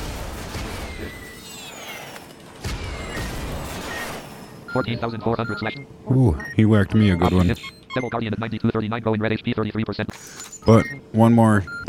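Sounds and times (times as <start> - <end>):
video game missiles fired at the Devil Guardian boss: 0.0 - 1.4, 2.6 - 4.5
speech: 4.7 - 11.8.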